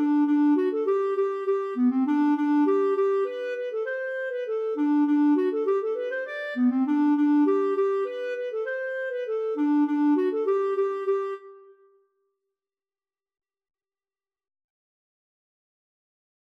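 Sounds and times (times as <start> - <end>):
polkett music: 0.0 - 11.8.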